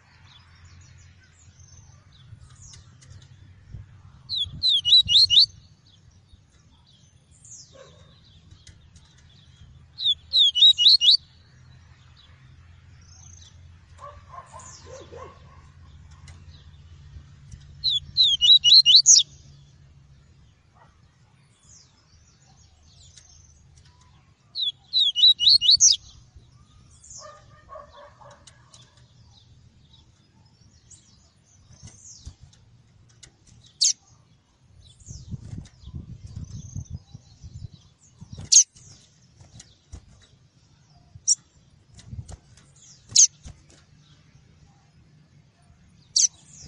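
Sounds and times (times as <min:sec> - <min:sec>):
other birds chattering softly: 0:00.0 - 0:46.6
double-collared seedeater whistled song: 0:04.4 - 0:05.5, 0:17.9 - 0:19.2.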